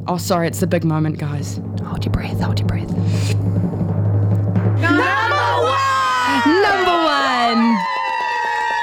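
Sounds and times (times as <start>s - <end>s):
speech: 0.1s - 3.7s
audience clapping and cheering: 4.8s - 8.8s.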